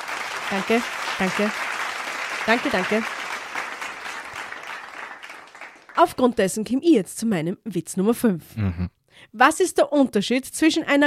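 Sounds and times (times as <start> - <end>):
applause for two performers trading jokes: 0.0 - 6.4
speech: 0.5 - 1.7, 2.4 - 3.2, 6.0 - 11.0.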